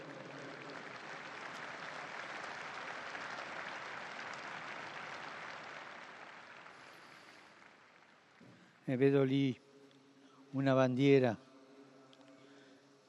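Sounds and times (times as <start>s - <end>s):
crowd applause: 0.0s - 8.4s
speech: 8.9s - 9.6s, 10.5s - 11.4s.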